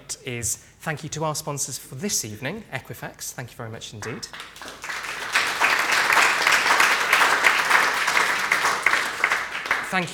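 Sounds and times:
speech: 0:00.1 - 0:04.8, 0:09.9 - 0:10.1
crowd applauding: 0:04.0 - 0:10.1.

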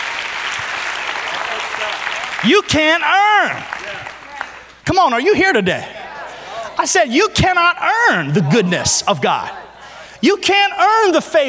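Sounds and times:
audience clapping: 0:00.0 - 0:04.9
speech: 0:02.4 - 0:04.1, 0:04.9 - 0:06.0, 0:06.8 - 0:09.6, 0:10.2 - 0:11.4
laughter: 0:05.3 - 0:10.8.

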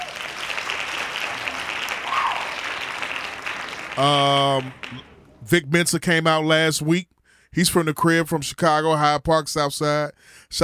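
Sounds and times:
hand claps: 0:00.0 - 0:05.3
speech: 0:04.0 - 0:10.6.

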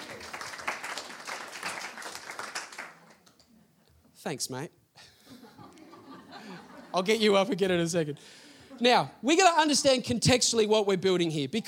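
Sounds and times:
audience applause: 0:00.0 - 0:03.3
speech: 0:04.2 - 0:04.8, 0:06.9 - 0:11.6
laughter: 0:05.0 - 0:09.1.

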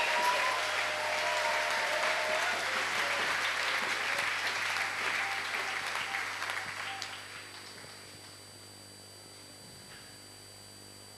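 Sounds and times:
congregation clapping at a church praise and thanksgiving service: 0:00.0 - 0:08.4.

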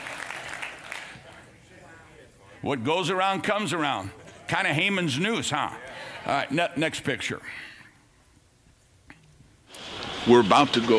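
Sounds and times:
audience clapping hands: 0:00.0 - 0:01.5
speech: 0:02.6 - 0:07.7, 0:10.2 - 0:10.9.

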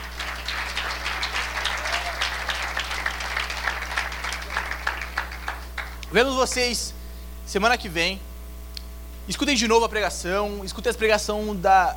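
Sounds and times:
crowd applause: 0:00.0 - 0:06.7
low constant hum: 0:00.0 - 0:11.9
speech: 0:06.1 - 0:08.3, 0:09.3 - 0:11.9.

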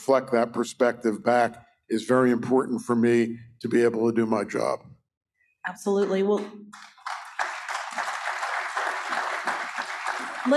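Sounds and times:
speech: 0:00.0 - 0:04.9, 0:05.6 - 0:06.9
audience applause: 0:06.8 - 0:10.5.

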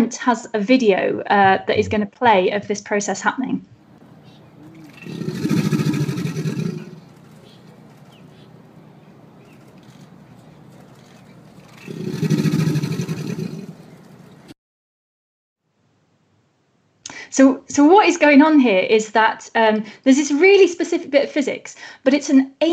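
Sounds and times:
speech: 0:00.1 - 0:03.7, 0:17.4 - 0:22.7
low steady hum: 0:03.6 - 0:14.5
alligator mating call bellows: 0:03.8 - 0:14.5.

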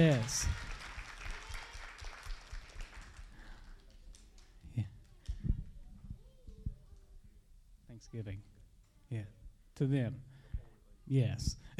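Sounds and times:
speech: 0:00.0 - 0:00.6, 0:08.1 - 0:08.5, 0:09.1 - 0:10.3, 0:11.1 - 0:11.7
crowd applauding: 0:00.0 - 0:04.5.

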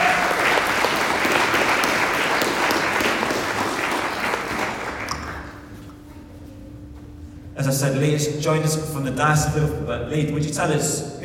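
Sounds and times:
crowd clapping: 0:00.0 - 0:05.7
speech: 0:07.7 - 0:11.2.

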